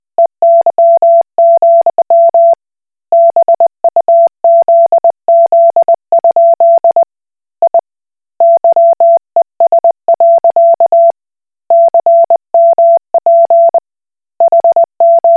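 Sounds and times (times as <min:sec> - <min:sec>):
Koch Morse code beeps: 0:00.2 - 0:02.6, 0:03.2 - 0:07.0, 0:07.6 - 0:07.8, 0:08.4 - 0:11.1, 0:11.7 - 0:13.8, 0:14.4 - 0:15.3.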